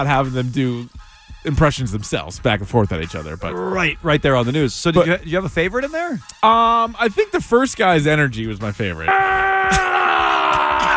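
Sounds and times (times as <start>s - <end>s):
speech: 0.0s - 9.8s
man yelling: 9.1s - 10.9s.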